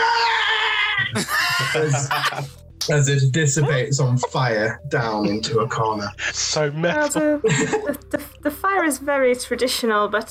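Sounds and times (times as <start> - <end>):
voice imitating gnomes screaming on a carriage roof: 0.0 - 2.0
laughter: 1.0 - 2.6, 3.6 - 8.0
speech: 1.2 - 10.2.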